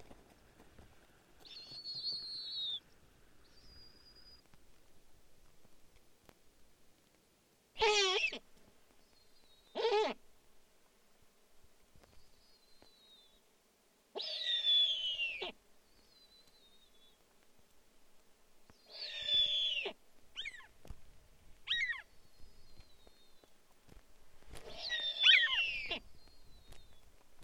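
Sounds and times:
snowy owl rasping whistled screams: 0:07.8 - 0:08.4, 0:09.7 - 0:10.2, 0:14.2 - 0:15.6, 0:18.9 - 0:20.7, 0:21.7 - 0:22.1, 0:24.7 - 0:26.0.

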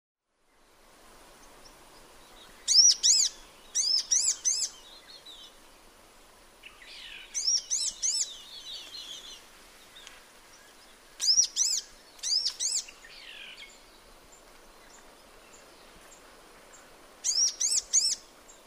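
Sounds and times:
sunbird calls: 0:01.4 - 0:05.9, 0:06.6 - 0:18.6.

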